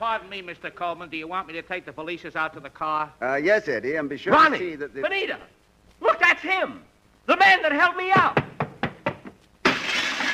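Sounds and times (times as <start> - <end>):
speech: 0.0 - 5.6, 6.4 - 8.6
person crashing through a glass window: 9.6 - 10.3.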